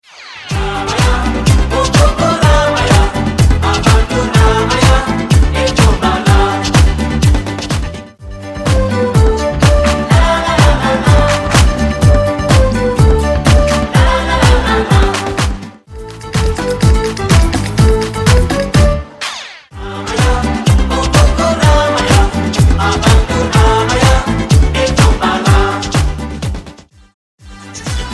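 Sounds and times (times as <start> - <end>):
group dance singing: 0.5 - 8.0, 8.7 - 26.4, 27.5 - 28.1.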